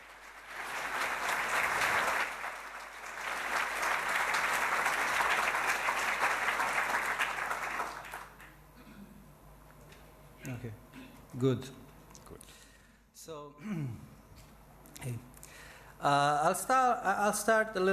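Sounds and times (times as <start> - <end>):
audience applause: 0.0 - 8.5
speech: 11.4 - 11.8, 16.0 - 17.9.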